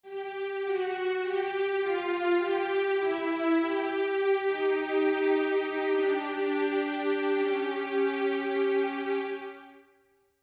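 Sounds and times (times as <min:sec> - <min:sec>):
strings: 0:00.0 - 0:09.9.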